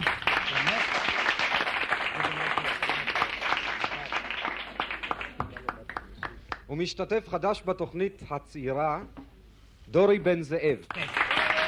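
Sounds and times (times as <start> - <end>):
studio audience applause: 0.0 - 6.7, 10.9 - 11.6
speech: 6.7 - 9.2, 9.9 - 11.4.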